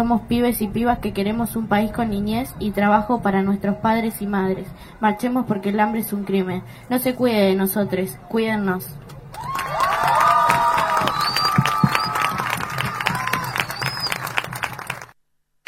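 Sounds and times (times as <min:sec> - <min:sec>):
speech: 0:00.0 - 0:09.4
crowd applause after a speech: 0:09.3 - 0:15.2.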